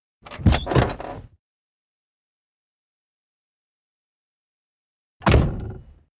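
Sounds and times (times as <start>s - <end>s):
van door opening: 0.3s - 1.2s.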